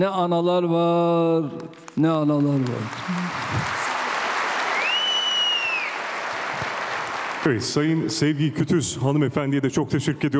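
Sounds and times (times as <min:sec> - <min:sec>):
speech: 0:00.0 - 0:03.8, 0:07.4 - 0:10.3
audience applause: 0:02.2 - 0:08.0
whistle: 0:04.7 - 0:06.0.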